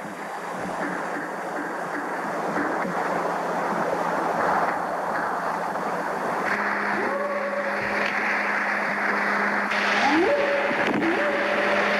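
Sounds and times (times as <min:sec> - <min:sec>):
low hum: 0:00.0 - 0:11.9
old field recording hiss: 0:00.0 - 0:11.9
whooping calls: 0:07.0 - 0:07.9, 0:09.7 - 0:11.9.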